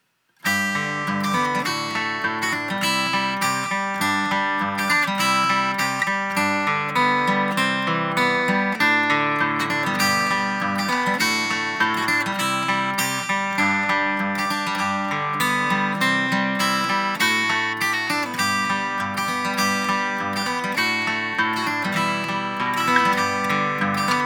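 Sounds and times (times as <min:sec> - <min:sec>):
acoustic guitar: 0:00.4 - 0:24.2.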